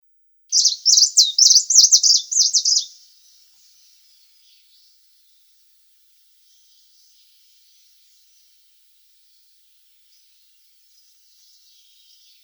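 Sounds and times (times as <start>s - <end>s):
Tickell's leaf warbler singing: 0.5s - 3.0s.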